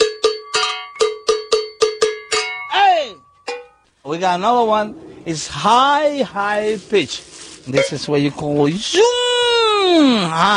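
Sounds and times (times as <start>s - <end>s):
low-pitched metal bell ringing: 0.0s - 6.1s
speech: 4.1s - 10.5s.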